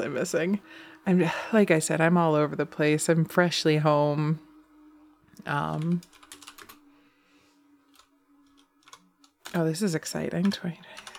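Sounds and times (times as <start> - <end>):
speech: 0.0 - 4.5, 5.4 - 6.2, 9.5 - 11.0
typing on a computer keyboard: 5.8 - 6.8, 7.9 - 9.6, 10.4 - 11.1.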